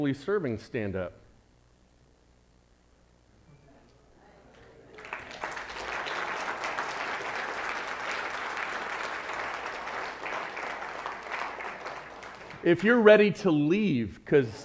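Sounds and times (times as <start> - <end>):
speech: 0.0 - 1.2, 12.6 - 14.6
audience clapping: 4.5 - 13.3.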